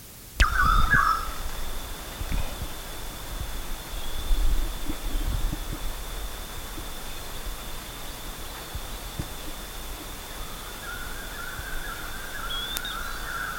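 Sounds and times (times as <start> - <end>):
harsh bird call: 0.4 - 2.1, 10.2 - 13.5
low thumping: 0.4 - 12.4.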